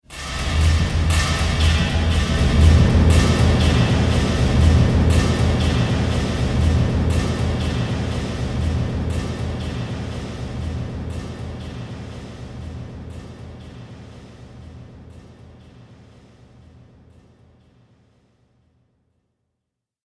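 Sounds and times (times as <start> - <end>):
cinematic drum stinger: 0.1 - 15.8.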